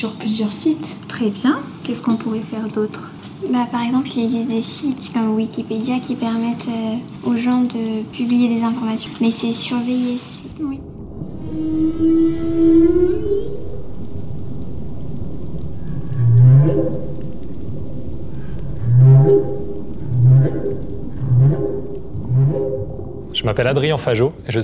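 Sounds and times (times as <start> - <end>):
speech: 0.0 - 10.9, 12.0 - 12.6, 23.6 - 24.6
humpback whale song: 9.6 - 24.5.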